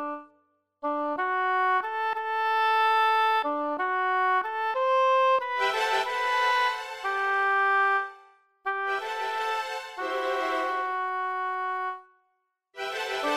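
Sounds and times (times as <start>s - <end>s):
oboe: 0.0s - 12.1s, 13.0s - 13.3s
strings: 5.6s - 8.2s, 8.9s - 11.4s, 12.8s - 13.3s.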